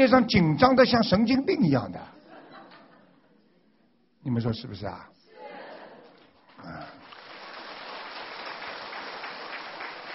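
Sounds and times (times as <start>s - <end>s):
speech: 0.0s - 2.2s, 4.2s - 5.2s, 6.6s - 7.0s
laughter: 2.1s - 3.4s, 5.3s - 6.3s
audience clapping: 6.1s - 10.1s.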